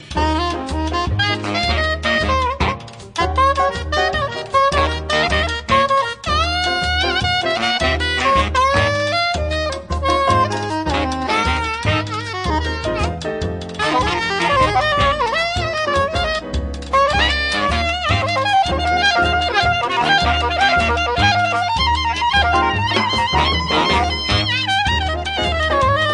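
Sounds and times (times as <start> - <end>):
swing samba music: 0.0 - 26.1.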